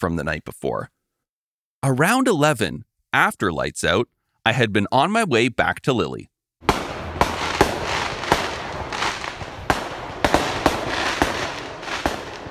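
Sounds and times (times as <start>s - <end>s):
speech: 0.0s - 1.0s, 1.8s - 6.3s
fireworks going off: 6.6s - 12.4s.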